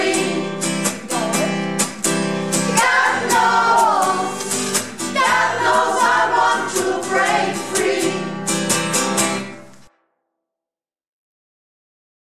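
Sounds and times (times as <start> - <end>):
all voice parts singing: 0.0 - 8.6.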